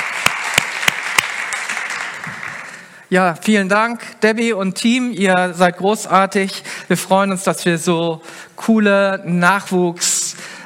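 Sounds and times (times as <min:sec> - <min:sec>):
audience applause: 0:00.0 - 0:03.0
speech: 0:03.1 - 0:10.1.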